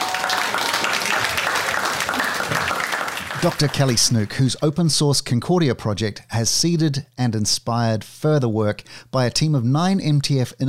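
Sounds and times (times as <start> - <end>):
audience applause at the close of a talk: 0.0 - 4.3
speech: 3.4 - 10.6.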